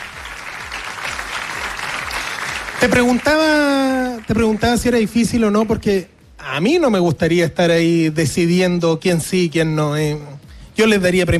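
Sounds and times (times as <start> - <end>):
audience applause for the jury: 0.0 - 4.9
speech: 2.8 - 11.3.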